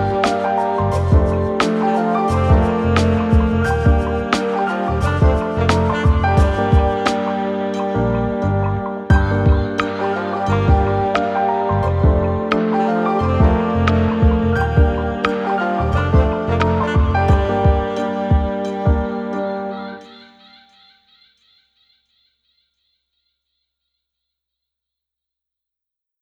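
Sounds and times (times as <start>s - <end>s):
piano: 0.0s - 20.8s.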